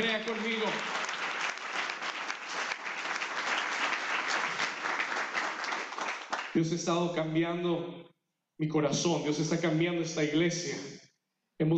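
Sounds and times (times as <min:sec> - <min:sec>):
speech: 0:00.0 - 0:01.0, 0:06.6 - 0:11.7
audience applause: 0:00.0 - 0:06.6.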